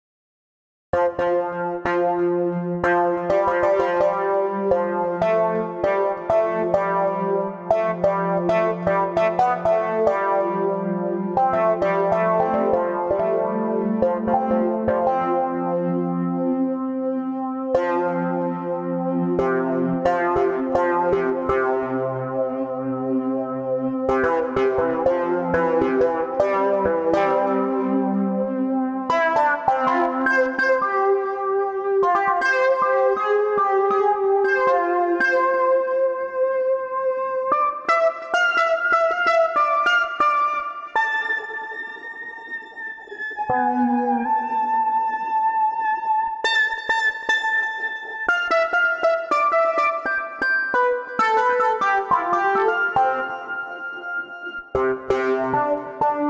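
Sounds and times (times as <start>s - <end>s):
String Studio VS3 synthesized strings: 1.0s - 56.2s.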